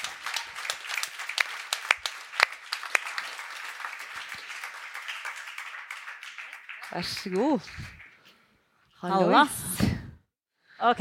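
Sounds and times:
audience applause: 0:00.0 - 0:08.3
speech: 0:06.9 - 0:08.0, 0:09.0 - 0:09.9, 0:10.8 - 0:10.9.

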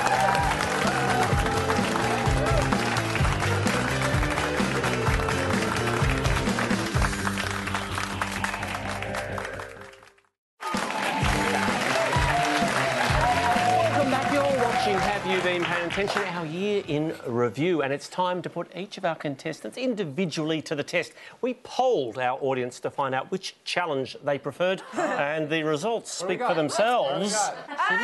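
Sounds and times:
studio audience applauding a departing game show contestant: 0:00.0 - 0:16.6
speech: 0:16.0 - 0:28.0.

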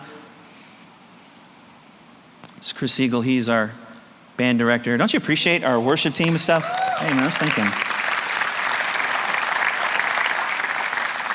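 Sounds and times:
speech: 0:02.5 - 0:03.8, 0:04.4 - 0:07.9
audience applause: 0:06.2 - 0:11.3.

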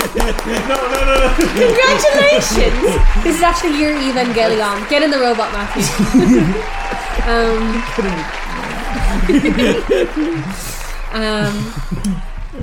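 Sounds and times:
person chuckling: 0:00.0 - 0:03.2, 0:08.9 - 0:12.3
clapping sound effect: 0:00.0 - 0:12.6
speech: 0:00.2 - 0:08.4, 0:09.2 - 0:12.2.

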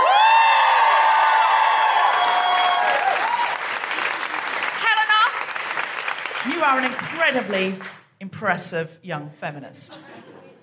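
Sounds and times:
audience cheering: 0:00.0 - 0:06.8
audience applause: 0:00.0 - 0:08.0
speech: 0:06.7 - 0:10.2.

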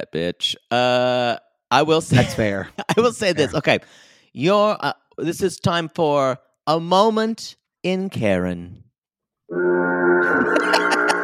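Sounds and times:
speech: 0:00.0 - 0:08.8, 0:09.5 - 0:11.0
foghorn blast: 0:09.5 - 0:11.2.

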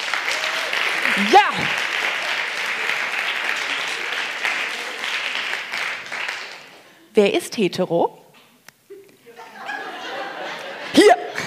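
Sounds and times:
audience clapping: 0:00.0 - 0:07.0
speech: 0:01.2 - 0:01.8, 0:07.2 - 0:08.2
laughter: 0:09.2 - 0:11.4.

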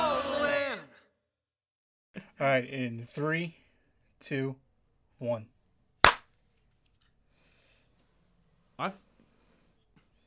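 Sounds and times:
speech: 0:02.4 - 0:03.6, 0:04.2 - 0:04.6, 0:05.2 - 0:05.6, 0:08.8 - 0:09.1
two hand claps in sync: 0:06.0 - 0:06.2.

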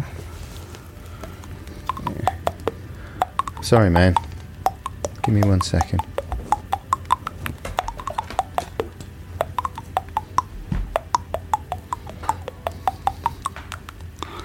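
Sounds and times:
cartoon theme tapped on teeth: 0:01.2 - 0:14.4
speech: 0:03.6 - 0:04.3, 0:05.3 - 0:06.1.

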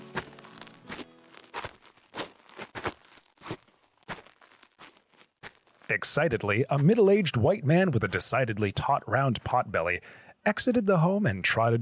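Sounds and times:
footsteps walking up a driveway: 0:00.0 - 0:08.4
speech: 0:05.9 - 0:11.8.

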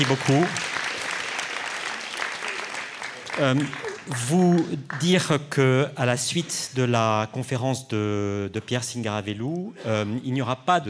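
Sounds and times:
speech: 0:00.0 - 0:00.7, 0:03.4 - 0:10.8
audience applause: 0:00.0 - 0:05.4.

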